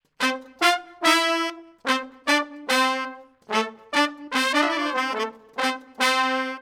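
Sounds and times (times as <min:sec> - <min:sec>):
horn section playing: 0:00.2 - 0:06.6.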